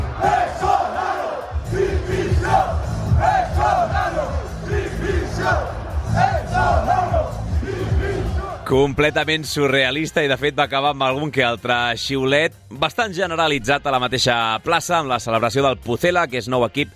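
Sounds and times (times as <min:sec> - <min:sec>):
dense crowd roar: 0:00.0 - 0:08.6
football fans chanting in packed city square: 0:00.0 - 0:08.7
speech: 0:08.7 - 0:16.9.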